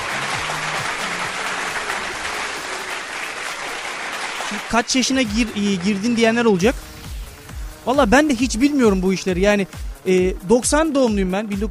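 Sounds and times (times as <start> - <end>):
applause sound effect for a host's birthday: 0.0 - 6.9
speech: 4.5 - 6.9, 7.9 - 11.6.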